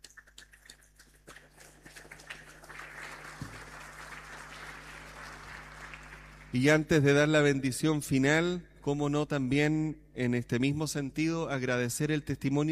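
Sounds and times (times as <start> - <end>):
applause: 0.0 - 7.2
speech: 6.5 - 12.7.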